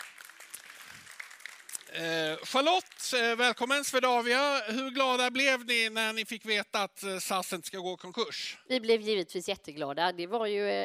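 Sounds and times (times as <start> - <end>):
audience applause for a panel: 0.0 - 4.2
speech: 1.9 - 10.8.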